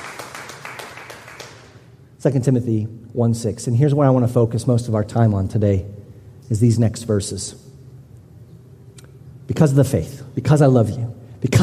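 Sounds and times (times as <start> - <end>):
audience clapping for grandparents: 0.0 - 1.9
speech: 2.2 - 7.7, 9.5 - 11.6.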